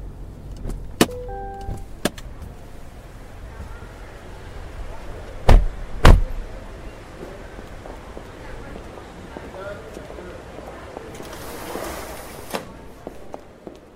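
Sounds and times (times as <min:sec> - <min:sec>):
car pulling up at a hotel entrance in Dubai: 0:00.0 - 0:13.6.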